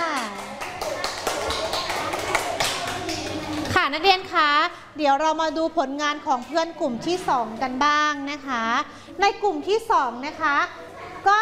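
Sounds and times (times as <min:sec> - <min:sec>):
students clapping hands: 0:00.0 - 0:03.8
speech: 0:03.9 - 0:11.4.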